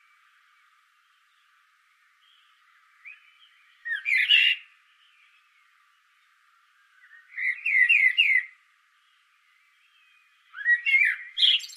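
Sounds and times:
common blackbird Turdus merula singing: 2.2s - 5.7s, 6.8s - 11.7s.

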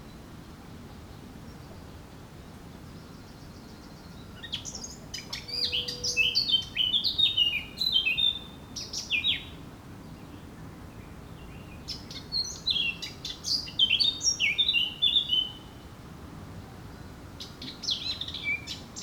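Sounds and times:
Eurasian blackcap singing: 4.4s - 9.6s, 11.4s - 15.8s, 17.4s - 19.0s.

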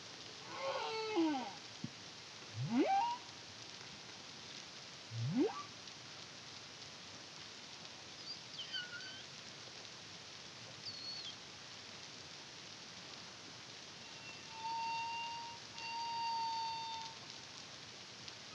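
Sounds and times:
background hiss: 0.0s - 18.5s
humpback whale song: 0.4s - 1.6s, 2.6s - 3.3s, 5.1s - 5.7s, 14.1s - 17.2s.

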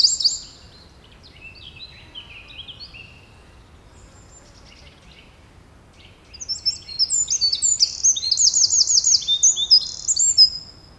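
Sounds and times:
Eurasian wren Troglodytes troglodytes singing: 0.0s - 3.2s, 6.2s - 10.8s.

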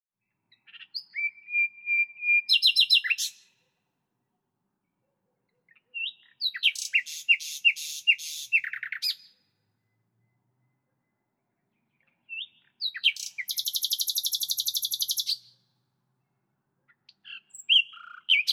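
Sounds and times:
common nightingale Luscinia megarhynchos singing: 0.5s - 3.7s, 5.4s - 15.7s, 16.9s - 18.5s.

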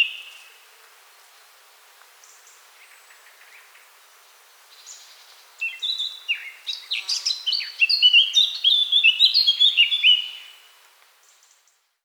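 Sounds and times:
Eurasian blackcap Sylvia atricapilla singing a chattering warble with whistled notes: 5.6s - 10.4s.

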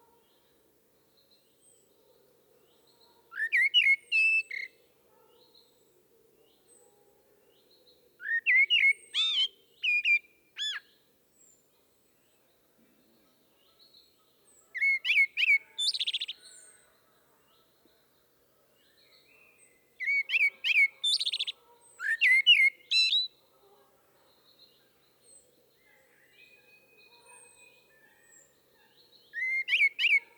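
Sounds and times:
common blackbird singing: 3.3s - 5.5s, 8.2s - 11.0s, 14.6s - 16.8s, 18.8s - 23.4s, 25.8s - 30.3s.

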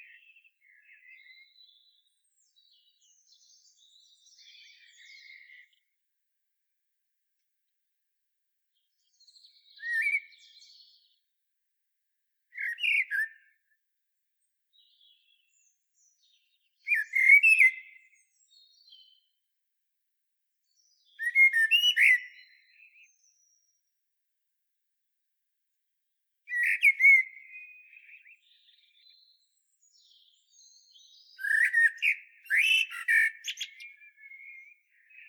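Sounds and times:
Common blackbird song: 0.0s - 6.2s, 8.7s - 11.5s, 12.2s - 19.5s, 20.5s - 24.2s, 26.4s - 35.2s.

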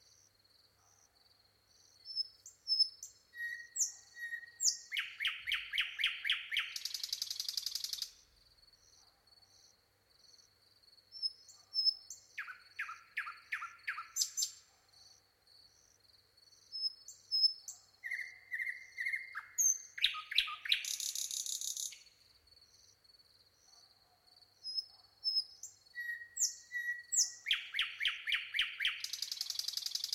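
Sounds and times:
common nightingale singing: 1.9s - 8.2s, 11.1s - 14.8s, 16.6s - 22.2s, 24.6s - 30.1s.

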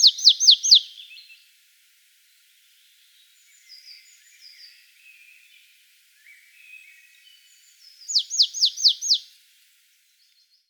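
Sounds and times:
Poecile palustris calling: 0.0s - 0.9s, 8.1s - 9.2s.

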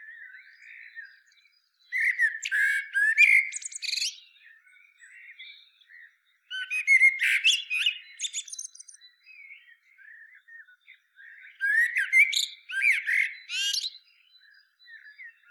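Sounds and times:
common blackbird song: 0.0s - 15.4s.

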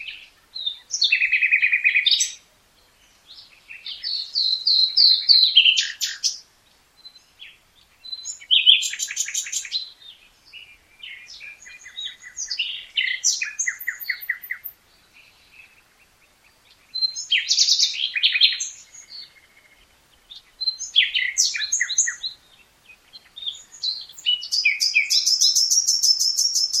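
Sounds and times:
common nightingale Luscinia megarhynchos singing: 0.0s - 26.7s.

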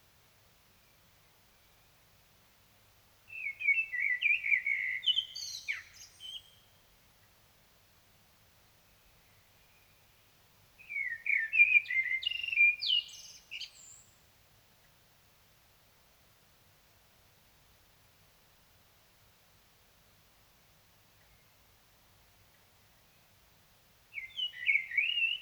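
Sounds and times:
Common blackbird singing: 3.3s - 6.7s, 10.8s - 14.2s, 24.1s - 25.4s.

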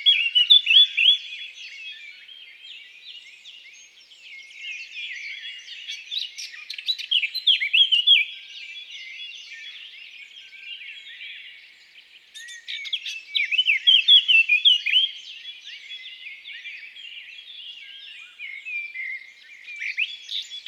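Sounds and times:
Eurasian blackcap singing: 0.0s - 2.2s, 3.2s - 10.0s, 12.4s - 16.6s, 17.8s - 20.6s.

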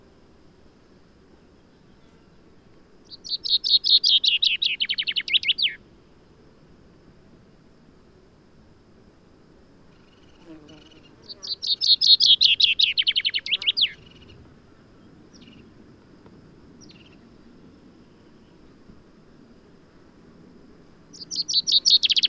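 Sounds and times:
common chaffinch song: 3.0s - 5.8s, 10.0s - 15.7s, 16.8s - 17.3s, 21.1s - 22.2s.

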